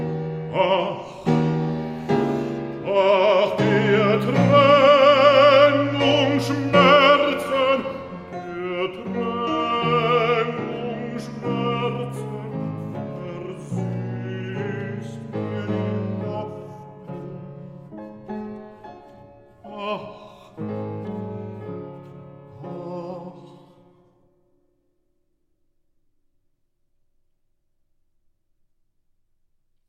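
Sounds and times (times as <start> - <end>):
piano accompaniment: 0.0 - 24.6
solo voice singing a song: 0.4 - 1.4, 2.1 - 17.4, 19.6 - 23.9.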